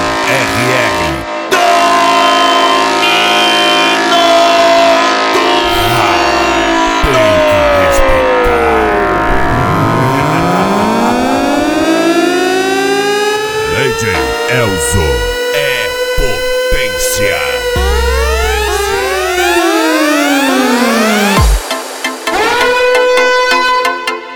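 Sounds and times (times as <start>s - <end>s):
horn blaring: 0.0s - 24.2s
engine rumbling: 5.6s - 12.0s, 13.0s - 20.2s.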